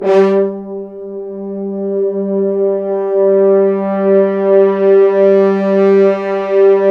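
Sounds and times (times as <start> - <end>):
French horns sforzando: 0.0 - 6.8.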